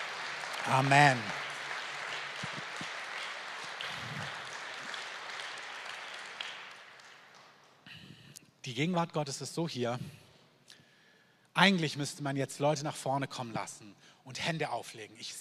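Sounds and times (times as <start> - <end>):
audience applause: 0.0 - 7.8
speech: 0.7 - 1.4, 8.6 - 10.2, 11.6 - 15.3.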